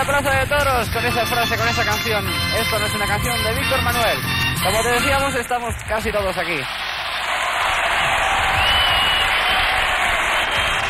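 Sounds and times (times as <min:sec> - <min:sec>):
speech: 0:00.0 - 0:06.9
crowd applauding in bullring: 0:05.8 - 0:10.8
faint cheering: 0:06.4 - 0:10.8.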